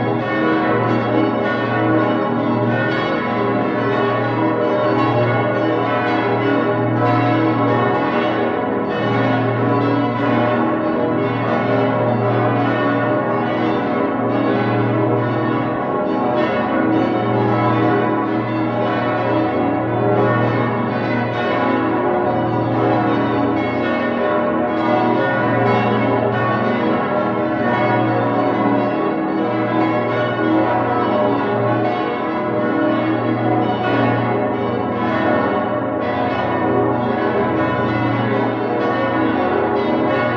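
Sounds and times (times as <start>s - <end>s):
cathedral bells in full peal for a high feast day: 0.0s - 40.3s.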